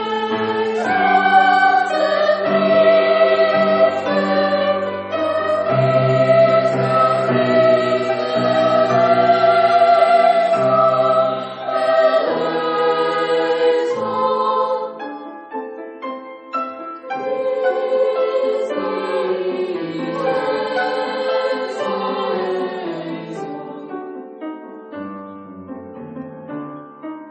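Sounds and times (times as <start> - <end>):
senior school choir singing a mass: 0.0 - 15.3, 17.1 - 24.0.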